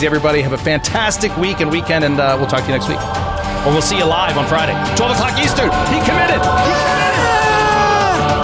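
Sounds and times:
speech: 0.0 - 7.0
people shouting and whooping: 6.6 - 8.3
person screaming: 6.6 - 8.3.

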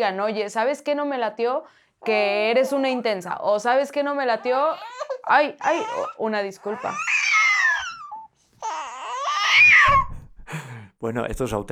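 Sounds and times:
speech: 0.0 - 7.2, 11.0 - 11.7
baby babbling and fussing while being fed: 4.4 - 10.2.

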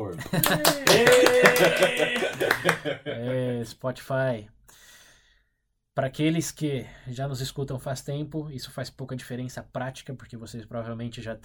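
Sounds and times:
speech: 0.1 - 4.6, 6.0 - 11.4
applause: 0.3 - 2.9
voices calling out and laughing: 0.3 - 3.3.

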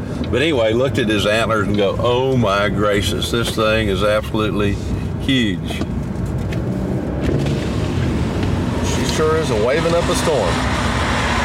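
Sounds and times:
speech: 0.3 - 6.0, 9.2 - 10.8
car driving past: 6.5 - 11.4.

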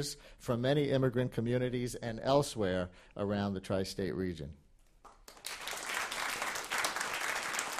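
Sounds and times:
speech: 0.0 - 4.6
applause from guests on stage: 5.0 - 7.7.

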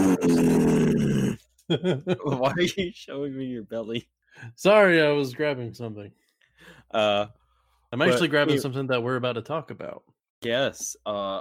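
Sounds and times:
person imitating an angry cow: 0.0 - 1.4
laughter: 1.7 - 3.0
speech: 1.7 - 11.3.

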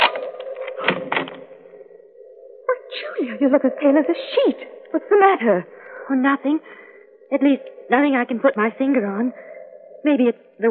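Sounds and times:
door being unlocked: 0.0 - 1.4
speech: 3.2 - 10.6.

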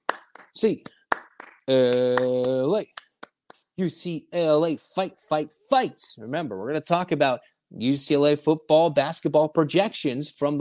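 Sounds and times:
rhythmic eight-count clapping: 0.0 - 3.7
speech: 0.6 - 1.0, 1.7 - 3.0, 3.8 - 10.5.

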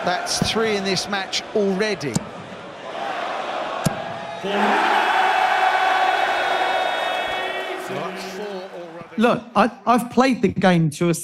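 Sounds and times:
speech: 0.0 - 2.4, 4.4 - 5.0, 9.2 - 11.2
crowd cheering a maximum score: 0.0 - 9.5.

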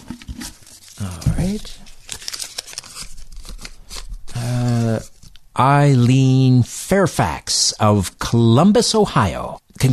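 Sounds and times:
paper prize draw entries being stirred around: 0.0 - 5.4
speech: 1.0 - 1.9, 4.9 - 9.9.

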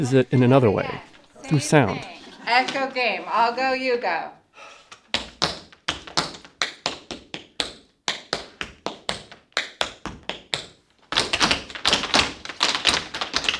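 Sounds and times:
speech: 0.0 - 4.7
dance shoes tapping on a hard floor: 4.9 - 13.5.

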